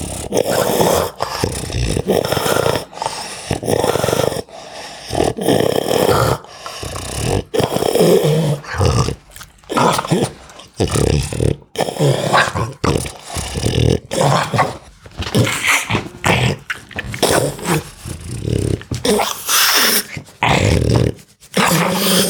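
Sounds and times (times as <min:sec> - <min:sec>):
pug giving raspy snorting breaths and low grunts: 0:00.0 - 0:22.2.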